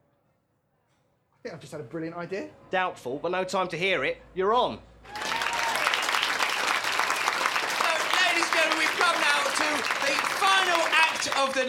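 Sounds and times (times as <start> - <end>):
speech: 1.4 - 5.2, 11.4 - 11.6
scattered voices and faint cheering: 5.0 - 11.6
audience applause: 5.1 - 11.6.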